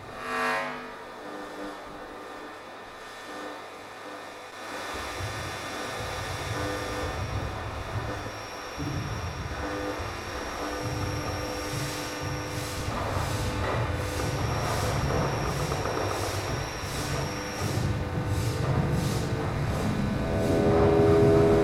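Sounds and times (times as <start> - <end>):
laptop noise ensemble: 4.9 - 21.6.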